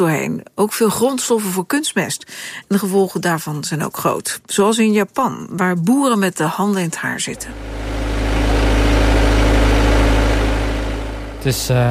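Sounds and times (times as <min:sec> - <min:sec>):
speech: 0:00.0 - 0:07.9, 0:11.4 - 0:11.8
potato harvesting machine engine running: 0:07.2 - 0:11.8.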